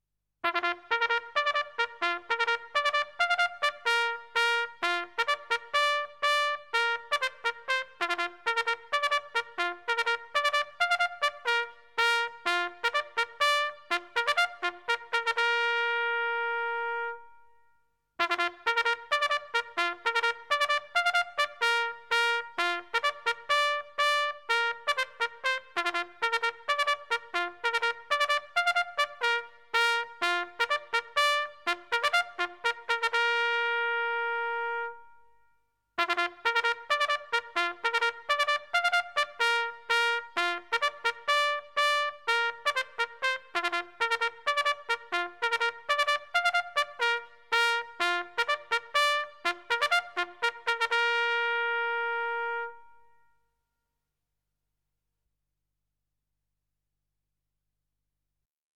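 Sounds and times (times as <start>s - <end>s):
military trumpet call: 0.4s - 17.4s, 18.2s - 35.2s, 36.0s - 53.2s.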